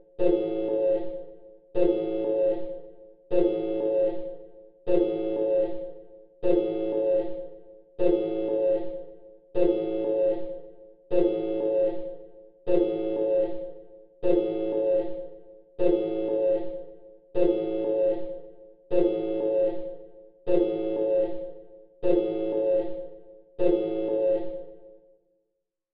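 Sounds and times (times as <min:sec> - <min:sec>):
collision alarm: 0:00.0 - 0:01.2, 0:01.8 - 0:02.8, 0:04.9 - 0:05.9, 0:06.5 - 0:07.4, 0:08.0 - 0:10.6, 0:11.2 - 0:24.8.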